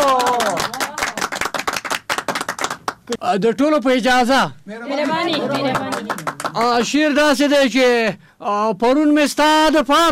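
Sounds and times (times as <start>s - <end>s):
audience clapping as a poet is called to the stage: 0.0s - 3.2s, 5.0s - 7.2s
speech: 3.1s - 10.1s.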